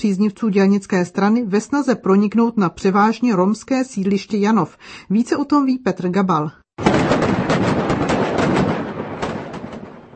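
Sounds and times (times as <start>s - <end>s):
speech: 0.0s - 8.2s
firecrackers exploding: 6.8s - 10.1s.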